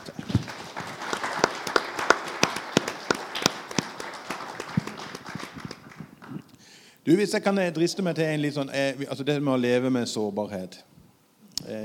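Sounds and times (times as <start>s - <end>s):
audience applause: 0.0s - 6.5s
speech: 7.1s - 10.9s, 11.7s - 11.8s.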